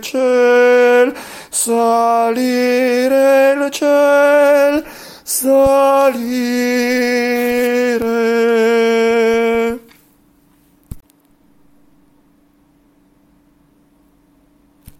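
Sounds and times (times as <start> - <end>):
sopranos singing: 0.0 - 10.0.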